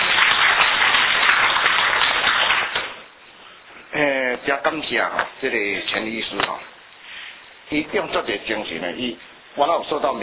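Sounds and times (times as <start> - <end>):
audience applause welcoming speaker: 0.0 - 3.1
speech: 4.5 - 6.7, 7.7 - 10.2.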